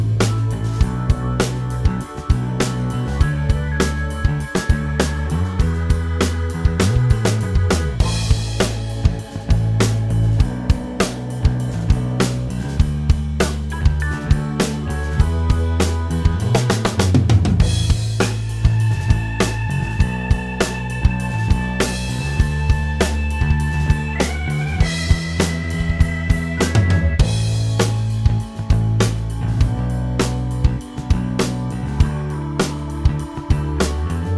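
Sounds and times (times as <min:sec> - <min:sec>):
roots rock band backing track: 0:00.0 - 0:34.3.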